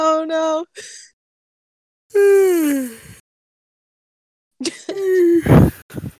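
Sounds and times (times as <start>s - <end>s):
long yawn: 2.1s - 3.2s, 5.0s - 6.1s.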